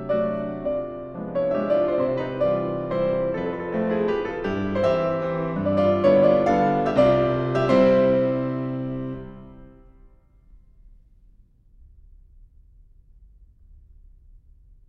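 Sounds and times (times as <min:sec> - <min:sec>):
piano mazurka: 0:00.0 - 0:10.1.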